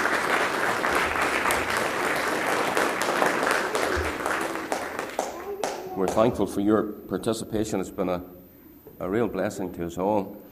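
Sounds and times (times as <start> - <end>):
audience applause for children: 0.0 - 6.3
speech: 6.0 - 8.4, 9.0 - 10.4.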